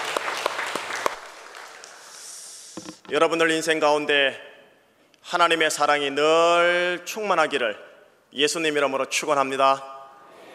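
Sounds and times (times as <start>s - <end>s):
audience applause: 0.0s - 2.0s
speech: 3.1s - 4.5s, 5.2s - 10.0s.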